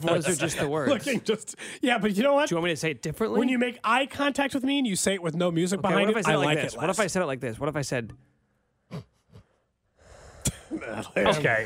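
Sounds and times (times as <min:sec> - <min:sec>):
speech: 0:00.0 - 0:08.3, 0:10.7 - 0:11.6
heavy breathing into the microphone: 0:08.9 - 0:10.7.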